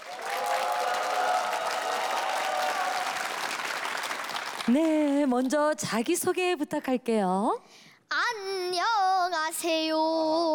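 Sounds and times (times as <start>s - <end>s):
audience applause: 0.0s - 5.2s
speech: 4.7s - 10.5s.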